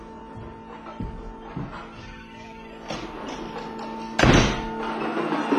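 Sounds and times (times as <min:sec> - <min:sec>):
door slammed shut: 0:02.8 - 0:05.5.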